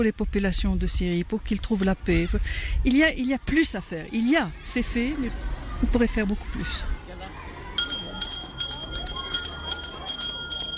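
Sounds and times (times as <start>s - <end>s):
speech: 0.0s - 7.0s
school bell ringing to end recess at a school in Jordan: 7.8s - 10.7s.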